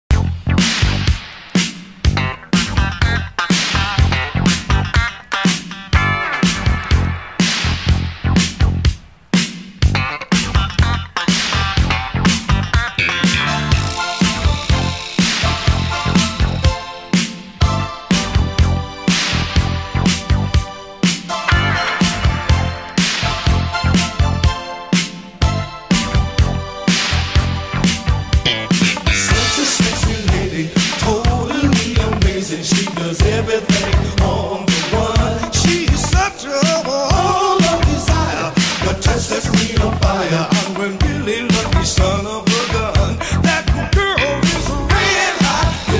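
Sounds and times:
rare funk music: 0.0s - 45.9s.

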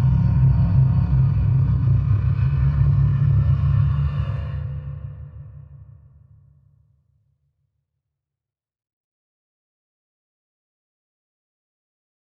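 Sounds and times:
dark drone: 0.0s - 6.3s.

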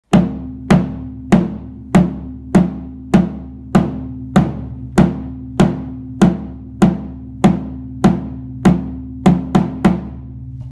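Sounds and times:
bass drum: 0.0s - 10.7s.

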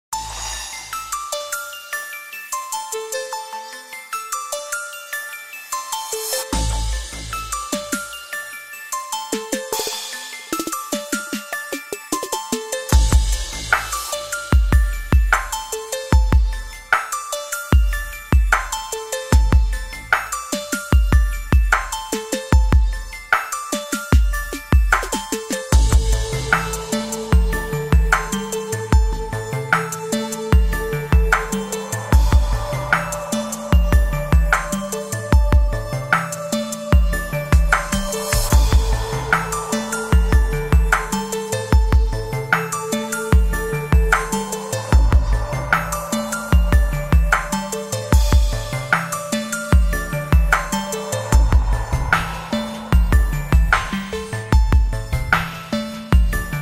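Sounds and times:
background music for technology videos: 0.0s - 56.6s.

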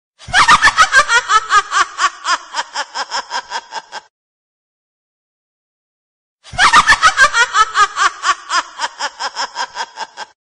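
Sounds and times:
woman laughing evilly: 0.2s - 4.1s, 6.5s - 10.4s.

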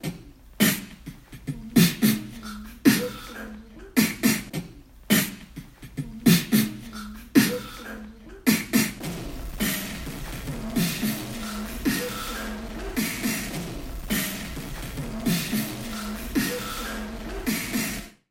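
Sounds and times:
beatbox: 0.0s - 18.2s.

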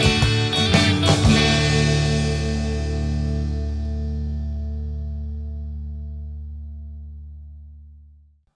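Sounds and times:
instrumental Christmas rock music: 0.0s - 6.2s.

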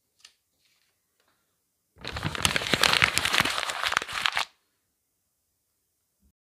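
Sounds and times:
sheet of paper crumpling: 2.0s - 4.5s.

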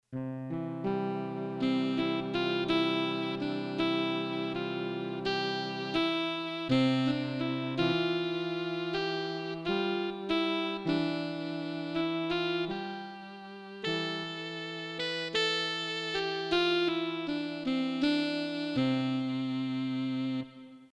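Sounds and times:
saxophone: 0.2s - 20.9s.

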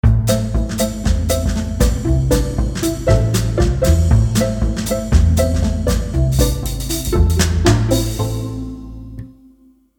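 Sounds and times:
jingle: 0.3s - 9.2s.

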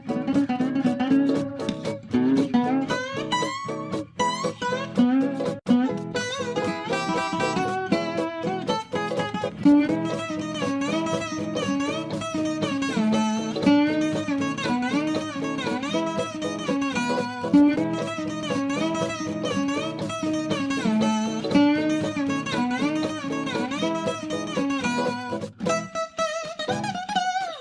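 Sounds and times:
ukulele melody: 0.0s - 27.5s.

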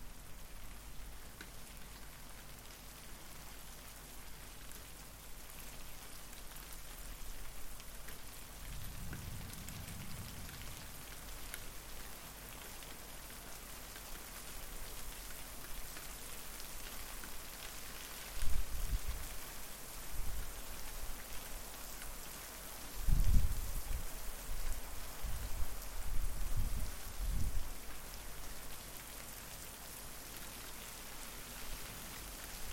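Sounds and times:
rain: 0.0s - 32.7s
thunder: 8.7s - 10.8s.

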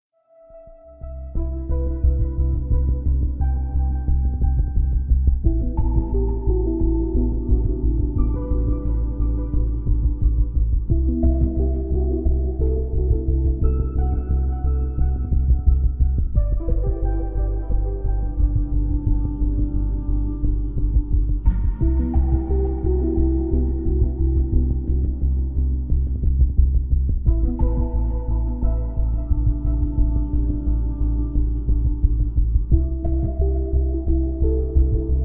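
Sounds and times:
background music: 0.2s - 35.2s.

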